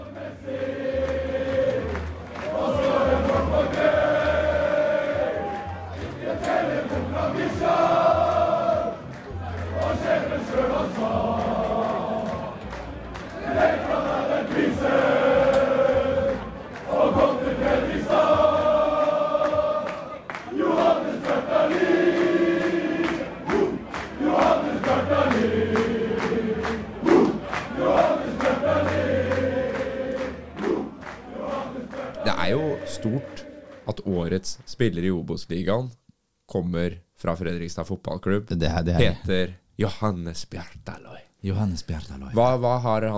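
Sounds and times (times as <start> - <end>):
large crowd cheering and chanting for player of the year: 0.0 - 34.2
shouts: 5.2 - 6.0
speech: 34.6 - 43.1.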